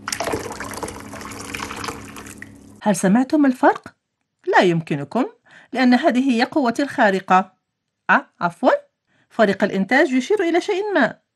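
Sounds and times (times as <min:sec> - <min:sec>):
hot water at 100 degrees Celsius pouring: 0:00.0 - 0:02.8
speech: 0:02.8 - 0:07.5, 0:08.1 - 0:11.2.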